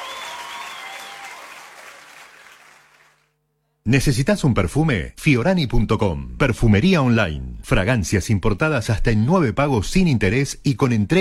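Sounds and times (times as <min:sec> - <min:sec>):
crowd applause: 0:00.0 - 0:03.2
speech: 0:03.9 - 0:11.1.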